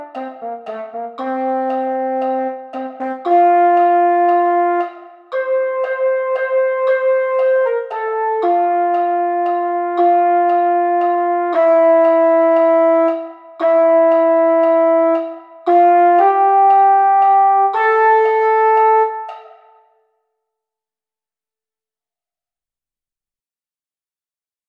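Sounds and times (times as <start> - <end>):
mellophone: 0.0 - 19.8.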